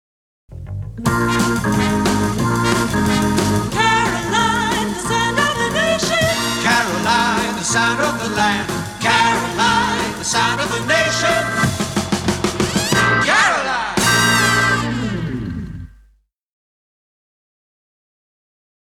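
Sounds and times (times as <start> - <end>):
Radio Caroline jingle: 1.1 - 15.9.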